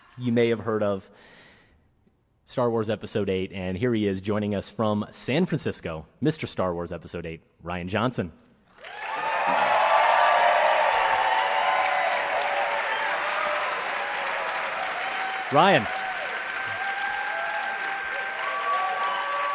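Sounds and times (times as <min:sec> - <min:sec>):
speech: 0:00.2 - 0:01.4, 0:02.5 - 0:09.0, 0:15.5 - 0:16.0
audience applause: 0:08.8 - 0:19.5
crowd cheering: 0:08.8 - 0:19.5.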